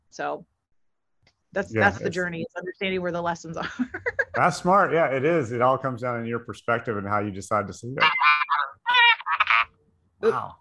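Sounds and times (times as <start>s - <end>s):
speech: 0.2s - 0.5s, 1.5s - 8.3s, 10.2s - 10.5s
laughter: 1.7s - 2.3s, 3.6s - 9.6s
croaking-frog phone ringtone: 8.0s - 9.6s.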